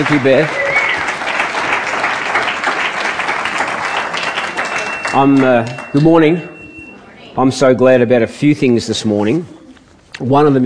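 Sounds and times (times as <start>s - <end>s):
speech: 0.0s - 0.6s, 5.2s - 6.5s, 7.4s - 9.6s, 10.2s - 10.6s
audience applause: 0.0s - 6.0s.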